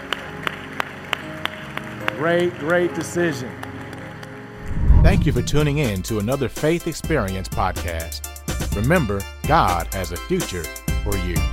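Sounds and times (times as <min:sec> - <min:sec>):
audience round of applause: 0:00.0 - 0:02.8
speech: 0:02.2 - 0:03.6, 0:05.1 - 0:11.5.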